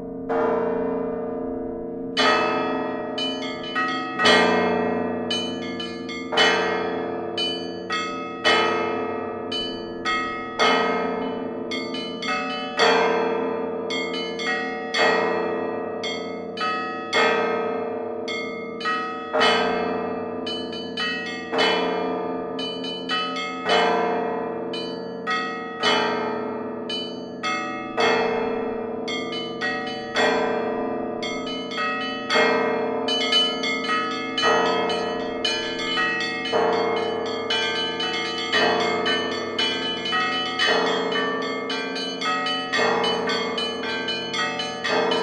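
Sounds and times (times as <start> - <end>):
Egorevsk bell peal: 0.4 - 45.2.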